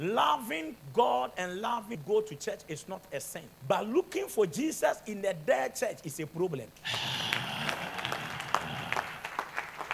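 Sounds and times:
speech: 0:00.0 - 0:07.5
audience clapping: 0:06.9 - 0:09.9.

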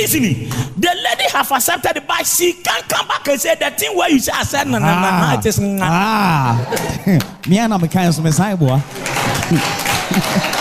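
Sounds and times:
speech: 0:00.0 - 0:10.6
laughter: 0:04.6 - 0:07.2, 0:09.0 - 0:10.6
audience clapping: 0:06.6 - 0:10.6.

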